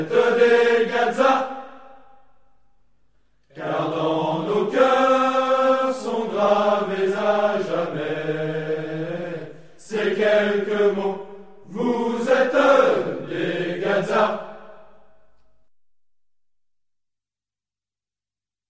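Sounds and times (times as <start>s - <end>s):
hymn verse: 0.0s - 2.2s, 3.4s - 15.2s.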